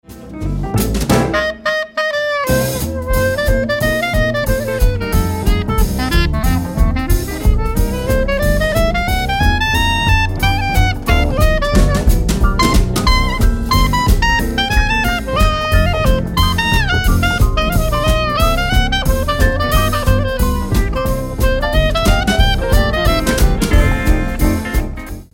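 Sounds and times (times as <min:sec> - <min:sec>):
clarinet: 0:01.1 - 0:25.3.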